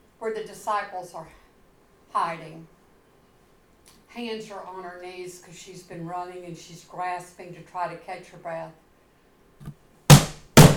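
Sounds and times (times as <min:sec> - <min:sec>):
speech: 0:00.2 - 0:01.4, 0:02.1 - 0:02.8, 0:04.1 - 0:08.8
pounding on a door: 0:09.6 - 0:10.7.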